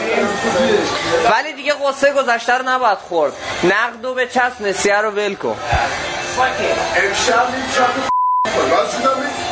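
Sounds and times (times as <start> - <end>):
speech: 0.1 - 8.1, 8.7 - 9.4
censor beep: 8.1 - 8.5.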